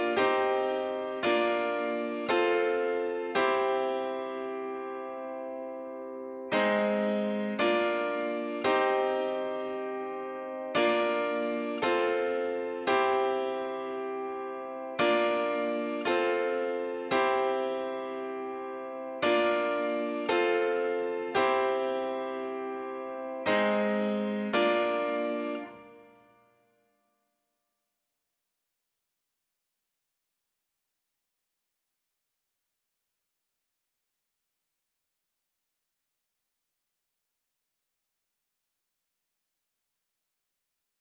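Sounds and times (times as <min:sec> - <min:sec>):
piano: 0:00.0 - 0:26.6.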